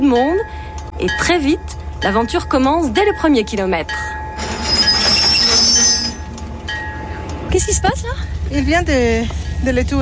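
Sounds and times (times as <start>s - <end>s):
passenger train departing Chihuahua rumbling: 0.0s - 9.9s
speech: 0.1s - 4.5s, 7.6s - 9.9s
passenger train wheel squeal: 4.4s - 6.4s.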